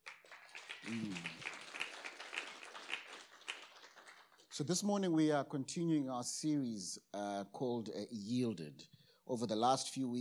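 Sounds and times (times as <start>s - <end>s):
faint applause for a church worship team: 0.0s - 4.6s
speech: 0.9s - 1.4s, 4.6s - 10.1s.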